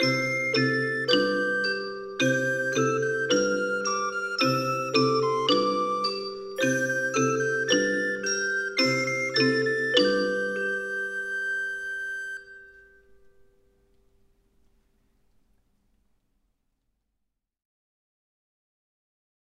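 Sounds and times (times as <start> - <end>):
backing track: 0.0 - 14.0.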